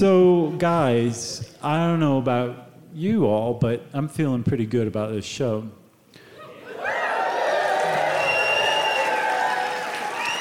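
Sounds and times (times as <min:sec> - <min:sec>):
speech: 0:00.0 - 0:05.8
live audience applauding: 0:06.7 - 0:10.3.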